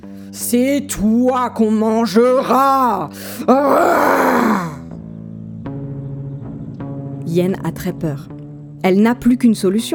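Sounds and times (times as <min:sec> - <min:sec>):
speech: 0:00.0 - 0:04.7, 0:07.3 - 0:09.9
person imitating an angry king roaring: 0:02.2 - 0:04.8.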